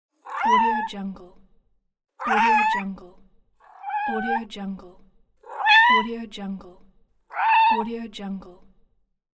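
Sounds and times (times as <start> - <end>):
hungry cat meowing: 0.2 - 0.9, 2.2 - 2.9, 3.6 - 4.4, 5.4 - 6.1, 7.3 - 7.9.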